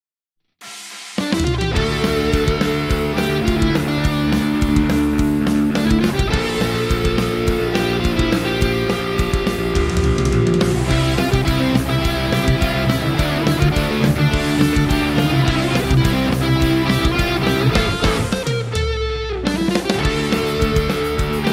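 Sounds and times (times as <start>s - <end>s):
8-bit version guitar cover: 1.2s - 21.5s.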